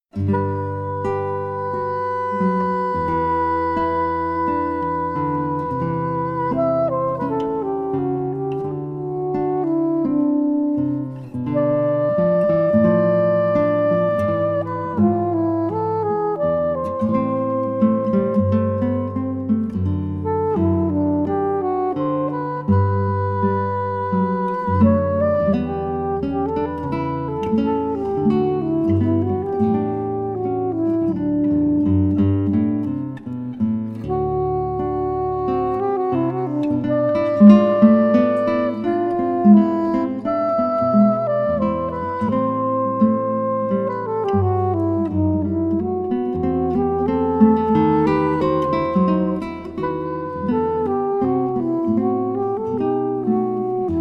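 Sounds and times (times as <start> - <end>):
classical string piece: 0.2 - 53.9.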